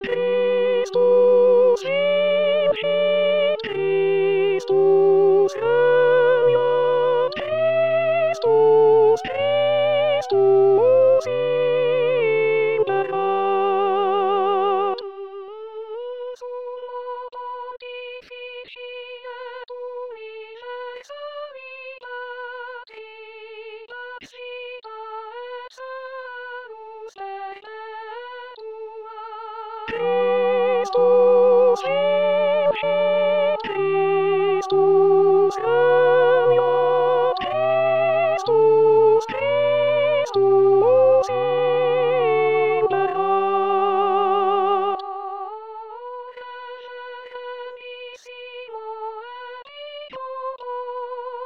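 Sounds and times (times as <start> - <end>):
tenors singing a chant: 0.0 - 15.2, 29.3 - 51.4.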